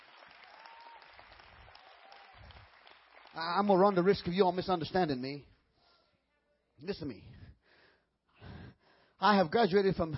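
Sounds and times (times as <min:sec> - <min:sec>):
audience clapping: 0:00.0 - 0:05.0
speech: 0:03.4 - 0:05.5, 0:06.8 - 0:07.4, 0:09.2 - 0:10.1.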